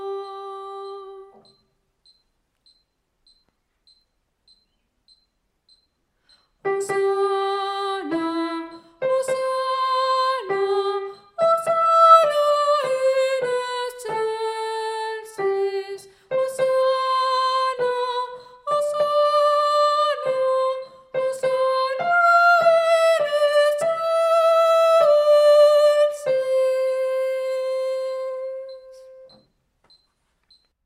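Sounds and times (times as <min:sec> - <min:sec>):
choral piece with piano: 0:06.7 - 0:29.2.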